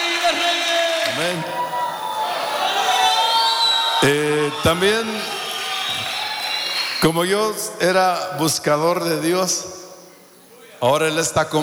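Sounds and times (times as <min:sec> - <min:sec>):
audience cheering: 0:00.0 - 0:07.5
audience applause: 0:01.0 - 0:07.0
speech: 0:01.2 - 0:01.6, 0:04.0 - 0:05.3, 0:07.0 - 0:09.8, 0:10.8 - 0:11.6.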